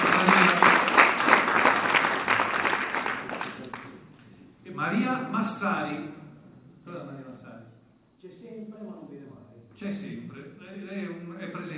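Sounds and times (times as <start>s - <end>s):
audience applause: 0.0s - 4.0s.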